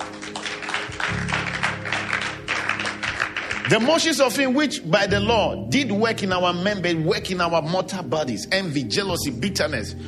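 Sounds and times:
audience clapping: 0.0 - 4.6
speech: 3.7 - 10.0.

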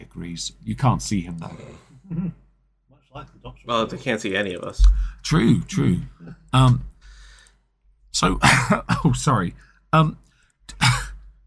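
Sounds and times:
speech: 0.2 - 2.4, 3.1 - 6.9, 8.1 - 11.0
dry cough: 8.4 - 9.1, 10.7 - 11.2.

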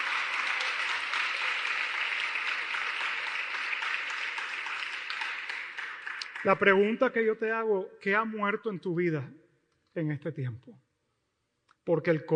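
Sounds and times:
loud applause: 0.0 - 7.0
speech: 6.4 - 9.4, 10.0 - 10.8, 11.9 - 12.3.

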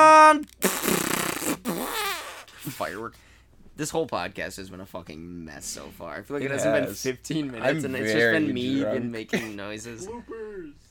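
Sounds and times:
fart: 0.6 - 2.7
speech: 2.8 - 10.8
laughter: 9.2 - 10.7.

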